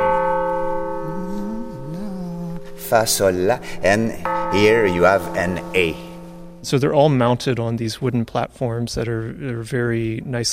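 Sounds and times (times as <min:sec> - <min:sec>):
carillon bell ringing: 0:00.0 - 0:07.2
speech: 0:02.9 - 0:06.0, 0:06.6 - 0:10.5.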